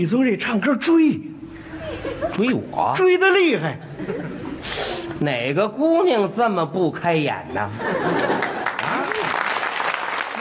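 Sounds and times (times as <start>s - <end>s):
speech: 0.0s - 1.3s, 2.0s - 8.3s
laughter: 1.6s - 2.6s, 3.6s - 5.2s, 7.5s - 9.5s
audience applause at a Chinese comedy stage performance: 8.1s - 10.3s.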